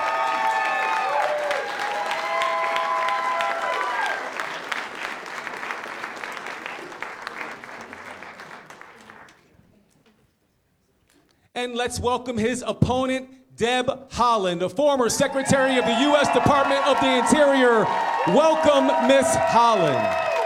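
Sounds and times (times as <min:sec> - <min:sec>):
crowd cheering: 0:00.0 - 0:09.3, 0:15.2 - 0:20.4
audience applause as debate candidates walk out on stage: 0:00.0 - 0:09.5, 0:15.3 - 0:20.4
speech: 0:11.6 - 0:20.2.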